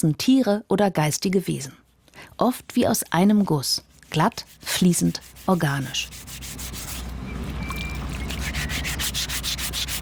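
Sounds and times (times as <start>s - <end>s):
speech: 0.0s - 1.8s, 2.4s - 6.6s
filing a stone sculpture: 4.0s - 7.0s, 8.3s - 9.9s.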